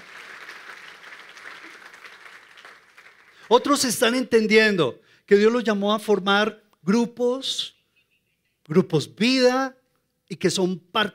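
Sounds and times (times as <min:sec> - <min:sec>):
audience applause: 0:00.0 - 0:03.7
speech: 0:03.5 - 0:07.8, 0:08.7 - 0:11.1.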